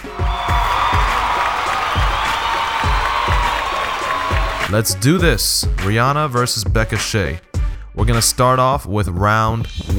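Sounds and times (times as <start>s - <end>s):
applause and cheering: 0.0s - 4.8s
speech: 4.7s - 9.9s.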